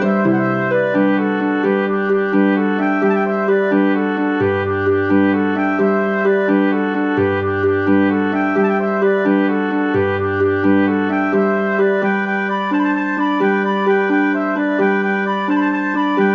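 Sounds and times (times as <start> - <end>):
march played on flute oboe and harp: 0.0 - 16.3.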